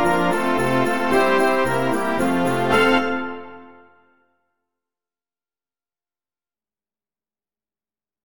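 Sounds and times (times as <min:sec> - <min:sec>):
Christmas song: 0:00.0 - 0:04.2.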